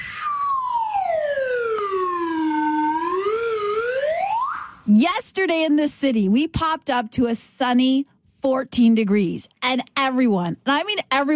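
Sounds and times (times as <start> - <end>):
slide whistle: 0.0 - 4.8
speech: 4.9 - 11.3.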